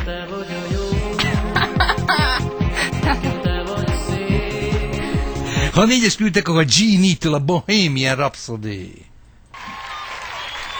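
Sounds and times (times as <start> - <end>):
laughter: 0.7 - 5.9
speech: 5.8 - 9.1
applause: 9.6 - 10.7.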